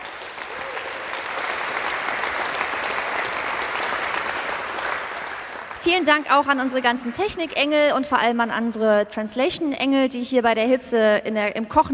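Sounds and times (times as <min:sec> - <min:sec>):
audience applause in a tent: 0:00.0 - 0:07.3
speech: 0:05.9 - 0:11.9.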